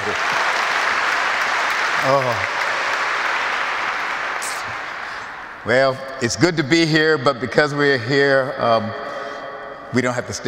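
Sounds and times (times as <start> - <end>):
audience clapping: 0.0 - 5.7
speech: 2.0 - 2.6, 5.6 - 9.0, 9.9 - 10.4.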